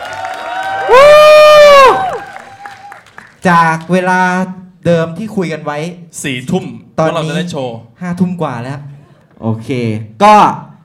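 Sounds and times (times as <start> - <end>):
audience applause: 0.0 - 3.4
speech: 3.4 - 10.6.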